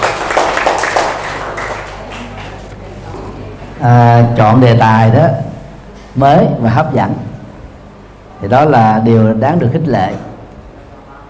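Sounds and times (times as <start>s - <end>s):
audience applause: 0.0s - 2.7s
speech: 3.8s - 5.5s, 6.2s - 7.3s, 8.4s - 10.3s.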